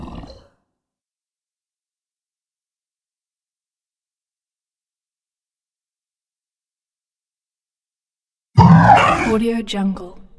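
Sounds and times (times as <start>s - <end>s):
alien creature voice: 8.6s - 9.5s.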